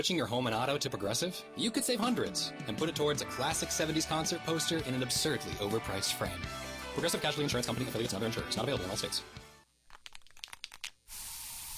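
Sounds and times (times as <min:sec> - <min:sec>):
speech: 0:00.0 - 0:09.4
bug spray can clicks and rattles: 0:09.9 - 0:11.7
bug spray aerosol hissing in a home: 0:11.1 - 0:11.7.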